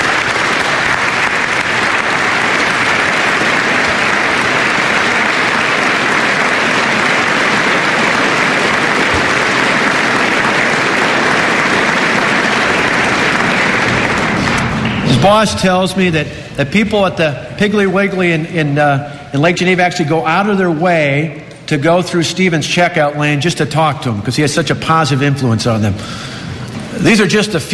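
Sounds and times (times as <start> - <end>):
audience round of applause: 0.0 - 18.4
speech: 15.2 - 26.4, 27.0 - 27.7.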